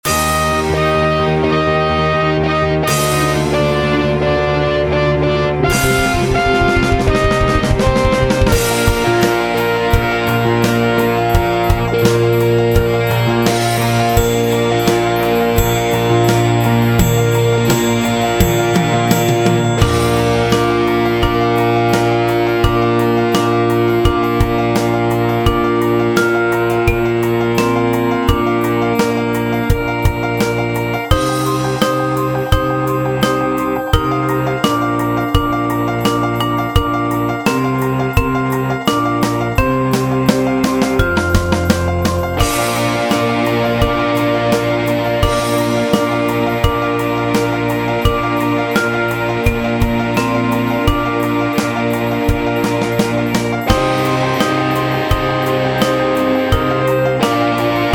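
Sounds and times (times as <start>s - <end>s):
Christmas song practice track in B flat: 0.0s - 57.9s.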